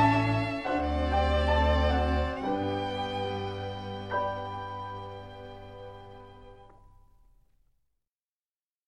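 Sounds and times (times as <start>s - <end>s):
tango music: 0.0s - 7.0s.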